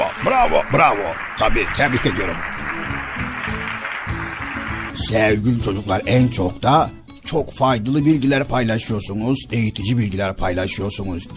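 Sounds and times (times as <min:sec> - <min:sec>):
applause, hands clapping: 0:00.0 - 0:05.5
speech: 0:00.3 - 0:02.9, 0:05.0 - 0:11.3.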